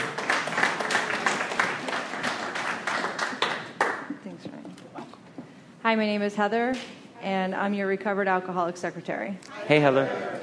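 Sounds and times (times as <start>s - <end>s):
audience applause at a recovery group meeting: 0.0s - 4.0s
speech: 5.9s - 10.4s.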